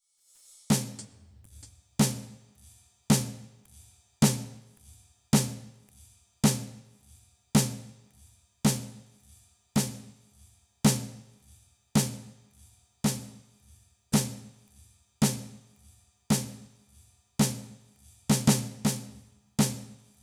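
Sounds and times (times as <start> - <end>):
snare drum: 0.7 - 4.8, 5.4 - 7.0, 7.6 - 8.1, 8.7 - 9.2, 9.8 - 10.3, 10.9 - 11.4, 12.0 - 13.6, 14.2 - 16.8, 17.4 - 20.2.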